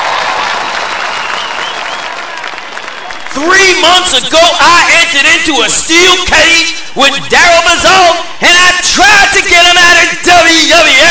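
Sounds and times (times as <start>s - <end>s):
large arena crowd cheering and applauding: 0.0s - 4.1s
whistles: 1.0s - 3.3s
speech: 3.4s - 11.0s.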